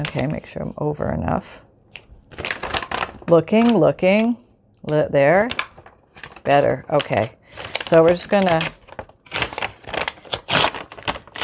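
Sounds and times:
speech: 0.0 - 1.7, 3.3 - 5.6, 6.4 - 8.8
sheet of paper torn by hand: 7.6 - 11.4.

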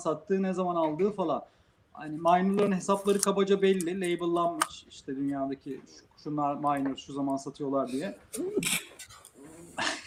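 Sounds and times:
speech: 0.0 - 10.0
person sneezing: 7.9 - 9.0.

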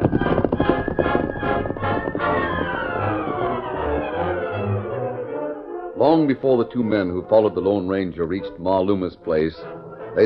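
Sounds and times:
horse Silver's hooves galloping off: 0.0 - 4.6
speech: 6.1 - 10.2.

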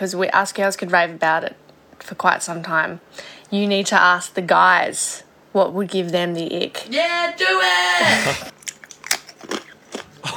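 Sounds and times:
speech: 0.0 - 8.6
Smith Chips being eaten ASMR style: 8.3 - 10.3.

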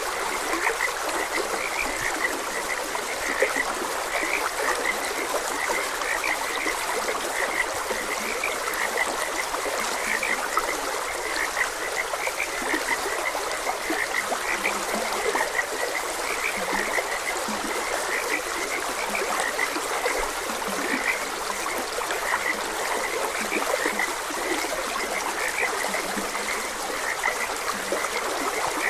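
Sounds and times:
frogs croaking in chorus: 0.0 - 28.8
trickling stream: 0.0 - 28.8.

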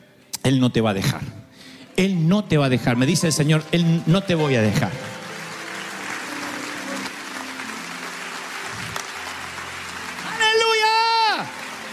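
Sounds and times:
speech: 0.4 - 1.4, 2.0 - 5.2
audience applause: 4.1 - 11.9.

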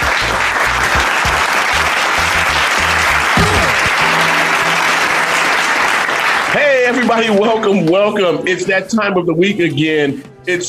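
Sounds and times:
crowd applause and cheering welcoming a sports talk radio show host: 0.0 - 7.5
speech: 6.9 - 10.6.

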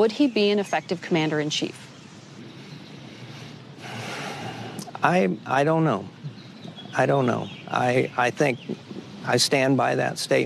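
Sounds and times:
speech: 0.0 - 1.9, 5.0 - 10.4
big deep breath: 2.5 - 4.9.

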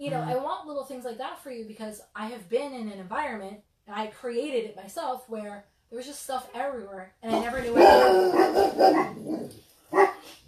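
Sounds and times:
speech: 0.0 - 10.4
dogs barking: 7.3 - 10.3.

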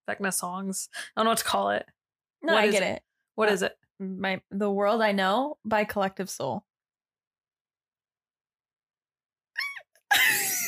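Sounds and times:
speech: 0.1 - 6.7
involuntary squeal while trying to breathe: 9.6 - 9.8.

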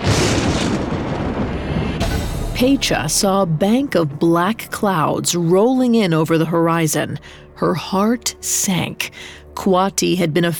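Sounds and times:
deafening crack of thunder: 0.0 - 4.2
speech: 2.6 - 10.5.

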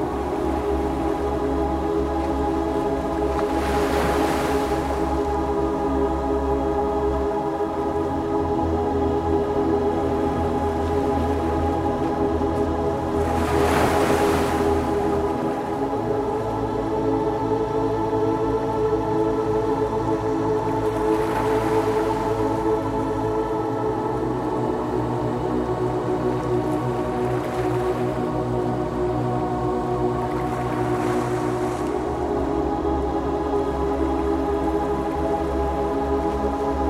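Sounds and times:
soft ocean waves: 0.0 - 5.9, 10.0 - 17.0, 20.6 - 36.8
gentle spiritual music track with layered tones: 0.0 - 36.8.

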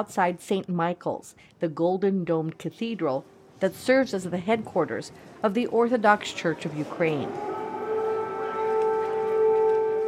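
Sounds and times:
speech: 0.0 - 7.6
faint noise: 0.0 - 10.0
air raid siren: 6.2 - 10.0.

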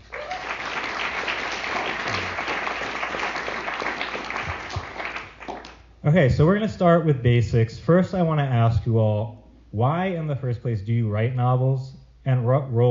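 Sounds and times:
audience applause: 0.0 - 5.8
speech: 6.0 - 12.8.

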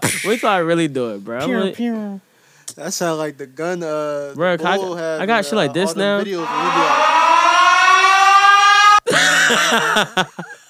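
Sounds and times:
speech: 0.2 - 7.2, 9.1 - 10.5
alarm siren sound effect: 5.8 - 9.1
laughter: 9.1 - 10.6.

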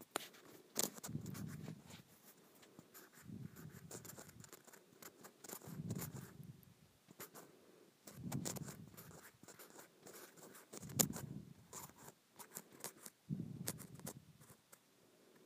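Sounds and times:
scratching on a small grooved plastic surface: 0.0 - 6.5, 8.0 - 14.8.

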